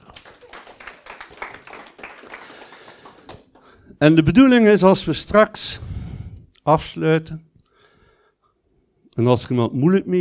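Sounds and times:
audience applause: 0.0s - 3.8s
speech: 4.0s - 5.9s, 6.6s - 7.5s, 9.2s - 10.1s.

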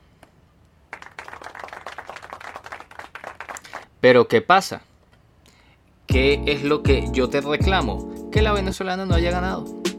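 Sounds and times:
applause: 0.9s - 3.9s
speech: 4.0s - 4.9s, 6.1s - 9.8s.

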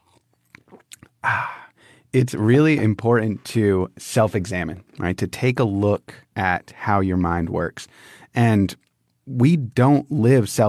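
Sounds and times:
person drinking water: 0.0s - 1.6s
speech: 2.1s - 10.6s.

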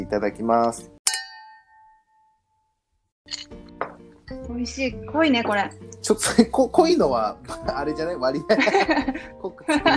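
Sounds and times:
speech: 0.0s - 1.0s, 4.5s - 9.9s
glasses clinking in a toast: 1.1s - 2.4s
laughter: 8.4s - 9.9s.

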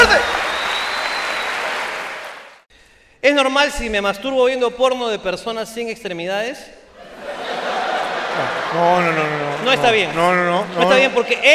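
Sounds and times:
audience applause: 0.0s - 2.6s, 7.5s - 11.1s
speech: 3.2s - 7.4s, 8.4s - 11.5s
laughter: 7.0s - 11.5s.

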